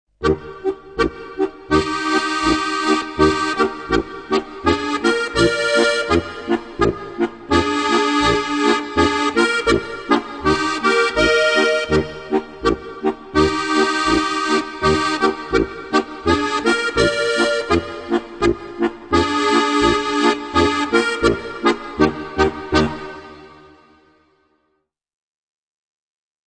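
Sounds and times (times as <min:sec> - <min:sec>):
polka music: 0:00.2 - 0:24.1.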